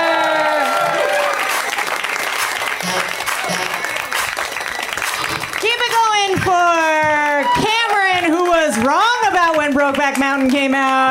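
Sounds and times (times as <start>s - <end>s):
audience applause welcoming a comedian to the stage: 0.0s - 11.1s
speech: 10.1s - 11.1s.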